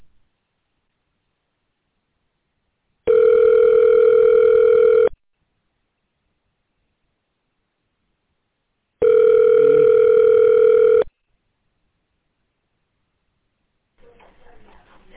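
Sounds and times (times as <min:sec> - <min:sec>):
telephone dial tone: 0:03.1 - 0:05.1, 0:09.0 - 0:11.1.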